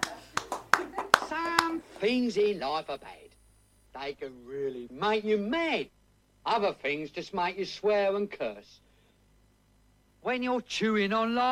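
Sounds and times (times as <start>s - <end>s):
concert audience clapping: 0.0s - 2.1s
speech: 2.0s - 8.9s, 10.2s - 11.4s.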